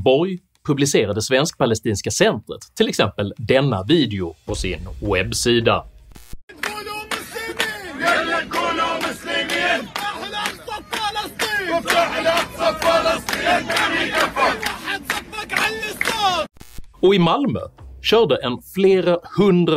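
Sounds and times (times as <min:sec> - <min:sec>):
speech: 0:00.0 - 0:05.9, 0:17.0 - 0:19.7
large crowd of supporters cheering, shouting and chanting: 0:06.5 - 0:16.5.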